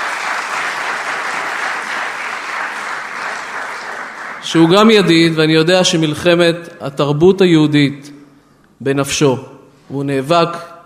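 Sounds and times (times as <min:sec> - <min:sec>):
audience applause for an arriving speaker at a public event: 0:00.0 - 0:04.9
speech: 0:04.4 - 0:08.1, 0:08.8 - 0:10.7.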